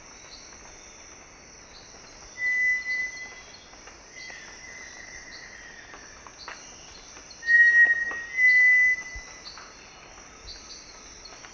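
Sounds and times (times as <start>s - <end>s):
Cinereous tinamou Crypturellus cinereus duet of clear steady whistles: 2.4s - 3.4s, 7.4s - 9.3s.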